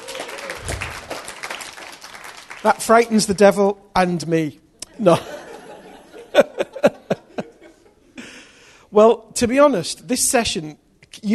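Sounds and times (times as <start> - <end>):
audience clapping: 0.0 - 3.2
speech: 2.6 - 5.3, 9.0 - 11.3
laughter: 4.9 - 8.2.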